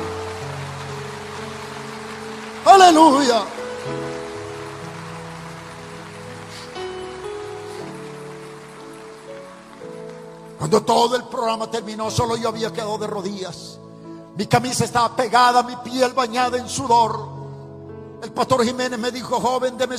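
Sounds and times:
audience applauding: 0.0 - 11.0
speech: 2.8 - 4.0, 10.6 - 13.8, 14.4 - 17.3, 18.2 - 19.9.

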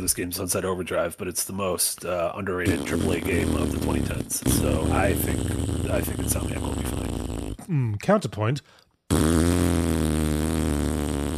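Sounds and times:
speech: 0.0 - 7.1, 7.7 - 9.4
voice blowing a raspberry imitating a fart: 2.6 - 8.0, 9.1 - 11.3.

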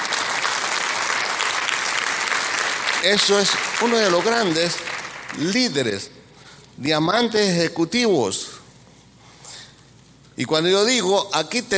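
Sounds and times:
audience applause: 0.0 - 5.6
speech: 3.0 - 4.8, 5.4 - 6.1, 6.8 - 8.5, 10.4 - 11.7.

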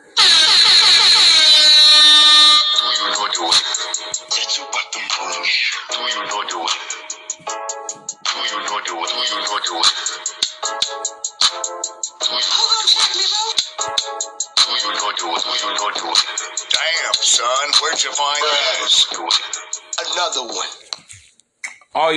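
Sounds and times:
dense rhythmic music with clipped stabs and voices: 0.0 - 21.0
air horn blaring: 0.2 - 3.0.

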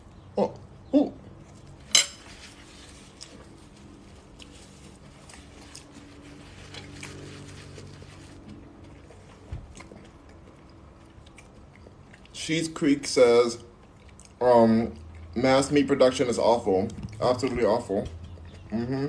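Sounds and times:
cutlery clinking against a dish while eating salad: 1.8 - 2.3
speech: 12.5 - 13.7, 14.4 - 19.0.

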